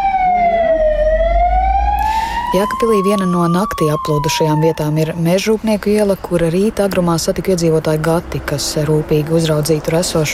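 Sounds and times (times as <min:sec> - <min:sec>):
alarm siren: 0:00.0 - 0:05.4
speech: 0:02.5 - 0:10.3.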